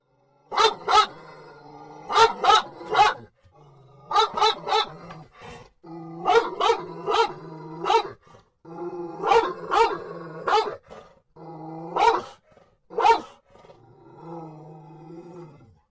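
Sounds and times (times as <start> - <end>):
dog growling in a car: 0.0 - 15.9
dog barking in a car: 0.5 - 1.2, 2.1 - 3.3, 4.1 - 5.0, 6.2 - 8.2, 9.2 - 10.8, 12.0 - 13.4.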